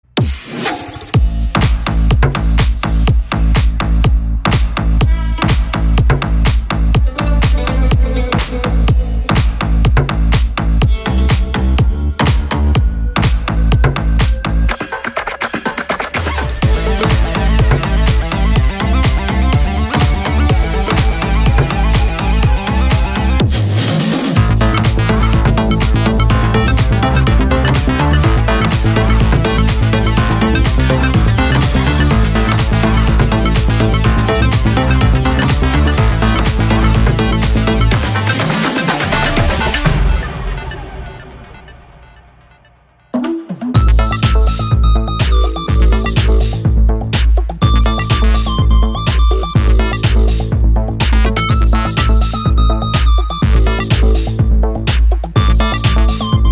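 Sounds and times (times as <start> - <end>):
fight background music: 0.1 - 56.4.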